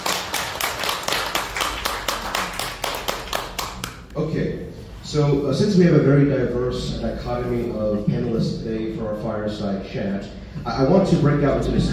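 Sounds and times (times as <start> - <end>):
audience applause: 0.0 - 4.0
speech: 4.3 - 11.9.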